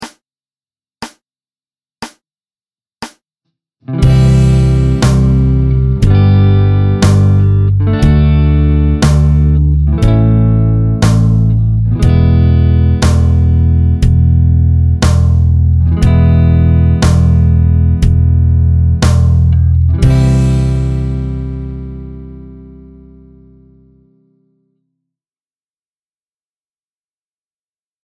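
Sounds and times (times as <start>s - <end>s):
chord progression: 3.9s - 24.1s.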